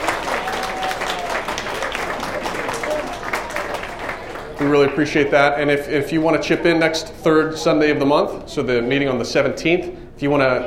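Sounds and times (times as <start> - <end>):
crowd applauding: 0.0 - 5.8
faint murmuring voices: 0.0 - 10.6
speech: 4.6 - 10.6.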